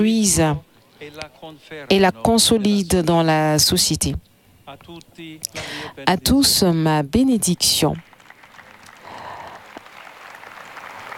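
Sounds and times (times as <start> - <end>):
speech: 0.0 - 8.1
large crowd of pilgrims applauding: 8.0 - 11.1.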